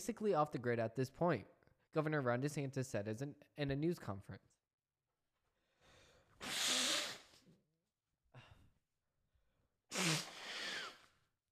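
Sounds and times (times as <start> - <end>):
speech: 0.0 - 4.6
person sneezing from seasonal fall allergies: 6.4 - 7.5, 9.9 - 11.2.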